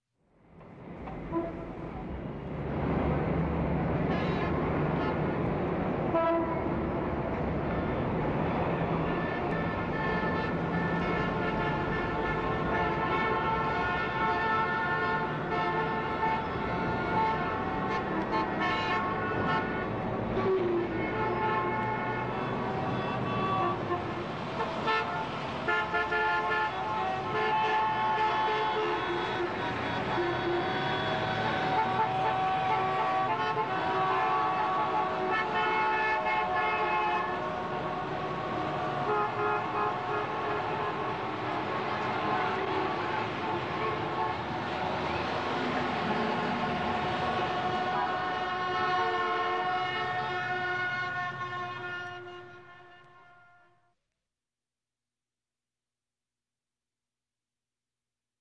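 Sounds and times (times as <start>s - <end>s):
car traffic: 0.3s - 53.9s.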